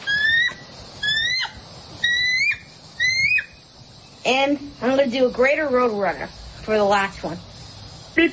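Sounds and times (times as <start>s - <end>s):
bald eagle call: 0.0s - 3.6s
speech: 4.3s - 7.5s, 8.2s - 8.3s.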